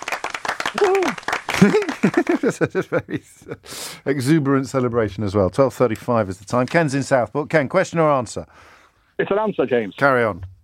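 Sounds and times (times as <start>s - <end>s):
audience applause: 0.0s - 2.5s
speech: 0.7s - 10.5s
laughter: 1.5s - 3.6s.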